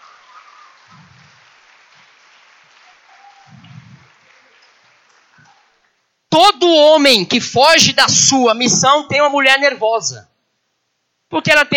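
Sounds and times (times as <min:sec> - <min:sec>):
audience applause: 0:00.0 - 0:06.0
speech: 0:06.4 - 0:10.3, 0:11.3 - 0:11.7.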